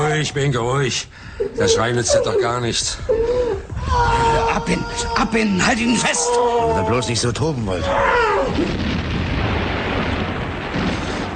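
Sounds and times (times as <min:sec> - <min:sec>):
speech: 0:00.1 - 0:09.0
aerial bomb explosions: 0:08.4 - 0:11.3.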